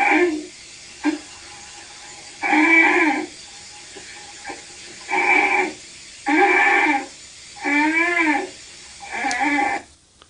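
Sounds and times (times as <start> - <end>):
polar bear cub honking for its mother: 2.4 - 3.3, 4.5 - 9.9.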